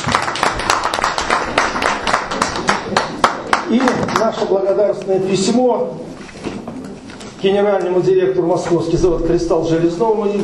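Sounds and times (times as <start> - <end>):
audience applause: 0.0 - 4.4
speech: 3.7 - 6.1, 7.4 - 10.4.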